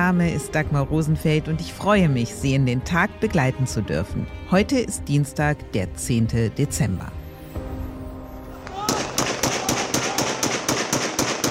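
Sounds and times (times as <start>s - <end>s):
speech: 0.0s - 7.2s
crowd cheering in the streets of Damascus: 8.6s - 10.7s
celebratory gunfire in the streets of Damascus: 8.7s - 11.5s.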